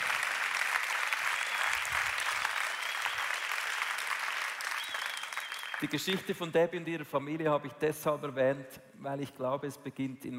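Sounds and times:
audience applause: 0.0 - 6.2
speech: 5.8 - 10.3.

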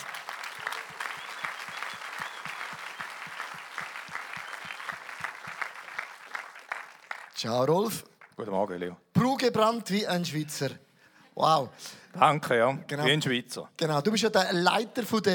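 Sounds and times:
audience applause: 0.0 - 7.4
speech: 7.4 - 10.8, 11.4 - 15.3.

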